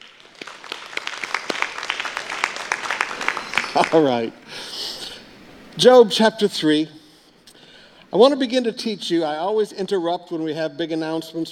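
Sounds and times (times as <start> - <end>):
audience clapping: 0.0 - 4.5
speech: 3.7 - 4.8, 5.8 - 7.0, 8.1 - 11.5.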